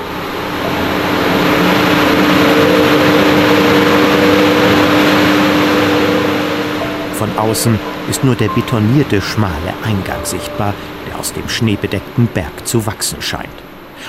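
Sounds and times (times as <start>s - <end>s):
cooling system fans roaring: 0.0s - 14.0s
faint humming tone: 0.0s - 14.0s
speech: 7.4s - 14.0s.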